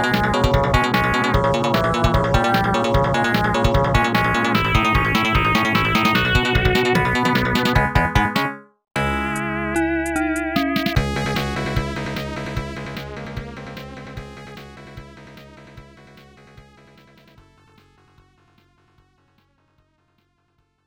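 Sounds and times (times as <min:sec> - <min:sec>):
battle music: 0:00.0 - 0:13.9.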